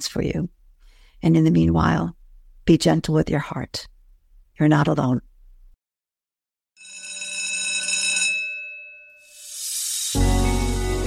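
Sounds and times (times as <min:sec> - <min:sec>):
speech: 0:00.0 - 0:00.6, 0:01.2 - 0:03.9, 0:04.6 - 0:05.3
high-pitched bell ringing: 0:06.8 - 0:09.7
loud hiss: 0:09.4 - 0:11.0.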